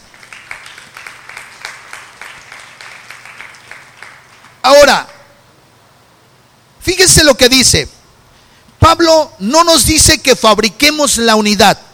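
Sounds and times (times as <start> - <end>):
audience applauding: 0.0 - 4.6
speech: 4.7 - 5.1, 6.8 - 8.0, 8.9 - 11.8.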